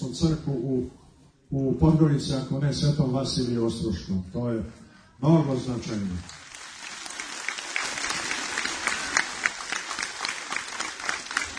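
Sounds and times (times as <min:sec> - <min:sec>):
speech: 0:00.2 - 0:06.4
audience applause at a public address: 0:06.3 - 0:11.5.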